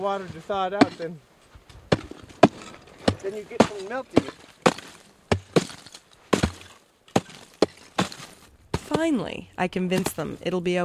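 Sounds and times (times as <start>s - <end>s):
speech: 0.0s - 1.3s, 3.2s - 4.4s, 8.9s - 10.8s
chopping ice or wood: 1.9s - 9.2s.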